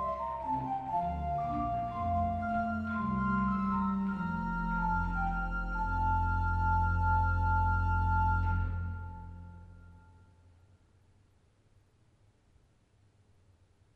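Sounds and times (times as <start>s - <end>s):
church organ eight-foot flute stop in Bergkirche: 0.0s - 10.0s.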